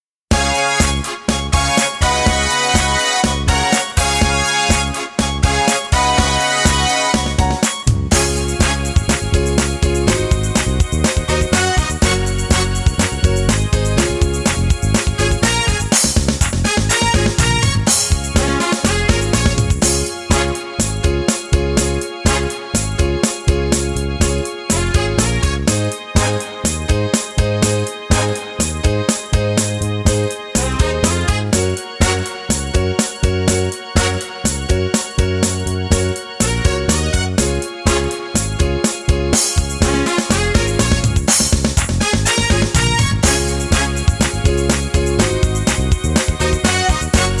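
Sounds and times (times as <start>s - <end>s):
karaoke backing track: 0.3s - 47.3s.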